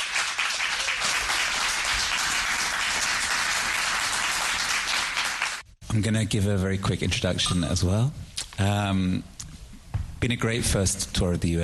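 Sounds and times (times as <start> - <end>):
audience applauding to welcome a band on stage at an evening concert: 0.0 - 5.7
speech: 5.9 - 9.3, 10.2 - 11.6.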